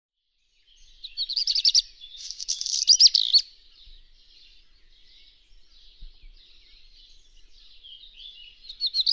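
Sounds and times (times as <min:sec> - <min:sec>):
black redstart calling: 0:00.7 - 0:09.1.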